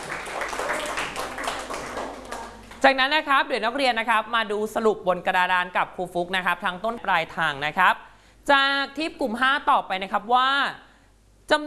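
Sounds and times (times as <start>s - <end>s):
students in a classroom clapping: 0.0s - 2.9s
speech: 2.8s - 10.8s, 11.5s - 11.6s.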